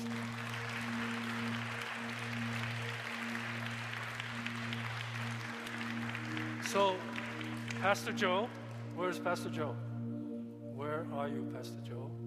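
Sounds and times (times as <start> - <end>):
applause: 0.0 - 9.5
speech: 6.7 - 7.2, 7.8 - 9.8, 11.1 - 12.1.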